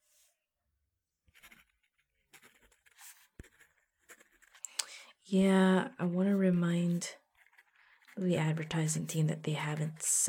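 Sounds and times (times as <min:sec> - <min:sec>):
pen scratching out a note by hand: 0:01.3 - 0:04.6, 0:06.3 - 0:09.2
speech: 0:05.3 - 0:07.2, 0:08.2 - 0:10.2.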